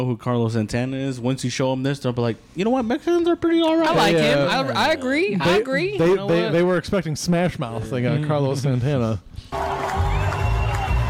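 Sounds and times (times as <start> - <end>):
speech: 0.0 - 9.8
crowd awkwardly clapping: 9.5 - 11.0.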